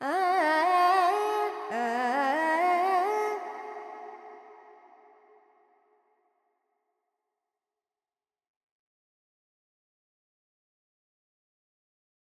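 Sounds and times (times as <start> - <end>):
Carnatic female vocal alaps in Dorian mode: 0.0 - 5.2.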